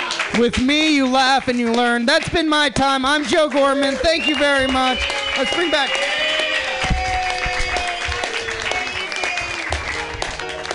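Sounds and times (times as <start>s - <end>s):
audience applause: 0.0s - 2.2s, 3.1s - 10.7s
speech: 0.4s - 6.2s
faint tonal whoops: 4.7s - 9.9s.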